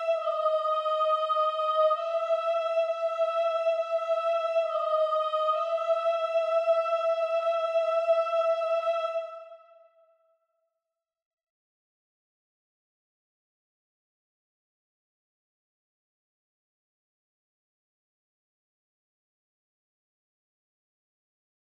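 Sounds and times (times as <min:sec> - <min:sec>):
soprano singing: 0:00.0 - 0:09.8.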